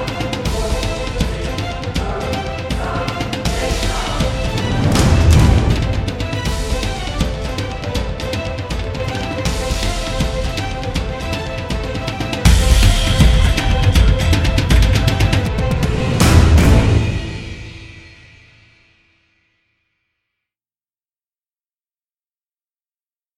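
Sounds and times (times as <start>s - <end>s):
intense competition music: 0.0s - 18.6s.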